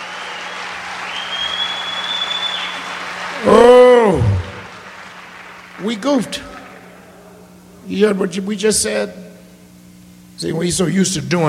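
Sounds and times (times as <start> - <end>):
audience applause: 0.0 - 7.1
speech: 5.8 - 6.5, 7.9 - 9.3, 10.4 - 11.4.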